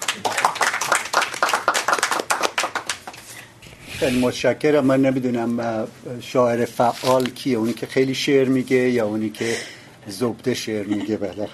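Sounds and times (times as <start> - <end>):
audience clapping to welcome a speaker: 0.0 - 3.2
speech: 4.0 - 11.5.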